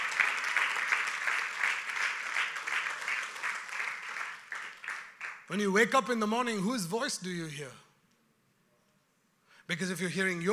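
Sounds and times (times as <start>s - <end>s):
audience clapping: 0.0s - 5.7s
speech: 5.5s - 7.8s, 9.7s - 10.5s.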